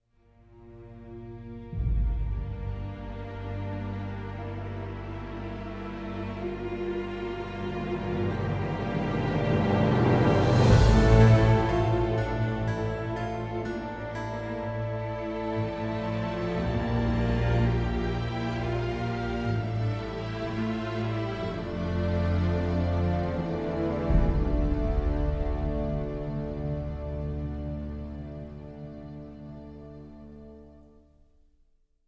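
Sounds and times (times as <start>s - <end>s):
music: 0.0s - 32.0s.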